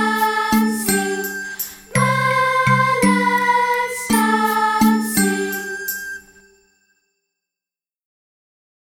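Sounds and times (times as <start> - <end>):
mallet percussion dance music: 0.0 - 6.7.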